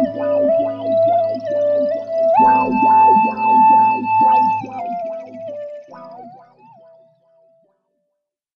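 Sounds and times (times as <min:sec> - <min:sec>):
Moog synthesizer: 0:00.0 - 0:07.6.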